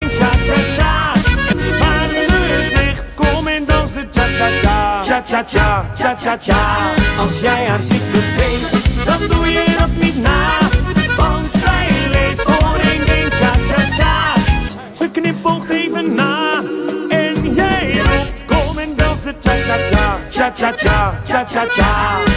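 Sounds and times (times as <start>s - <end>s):
cha cha cha music: 0.0s - 22.3s.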